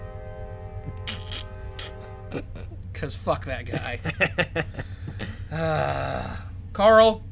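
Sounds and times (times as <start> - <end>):
train horn honking: 0.0 - 2.8
speech: 2.3 - 7.3
laughter: 3.6 - 6.0.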